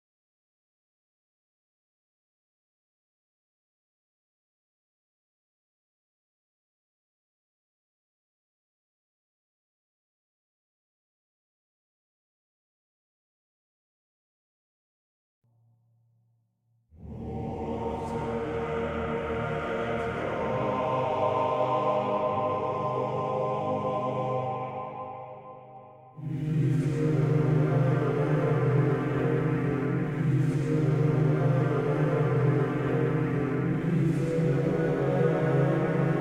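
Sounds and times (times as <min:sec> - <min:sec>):
choir singing: 0:17.0 - 0:36.1.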